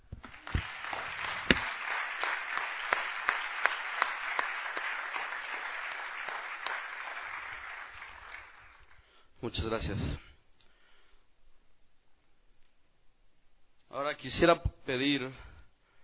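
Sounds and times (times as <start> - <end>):
audience applause: 0.0 - 9.0
speech: 9.4 - 10.3, 14.2 - 15.5.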